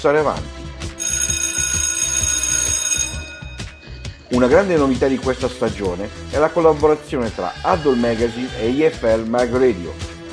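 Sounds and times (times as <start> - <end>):
speech: 0.0 - 0.5, 4.3 - 10.0
bell signalling end of topic: 1.0 - 4.8.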